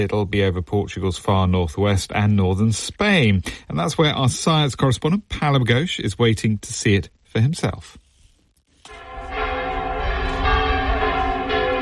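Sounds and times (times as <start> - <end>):
speech: 0.0 - 8.0
cathedral bells ringing: 8.9 - 11.8.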